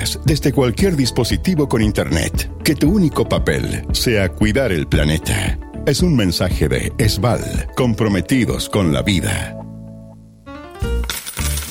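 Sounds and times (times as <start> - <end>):
speech: 0.3 - 9.6
coins dropping and clinking, money sound effect: 10.8 - 11.6.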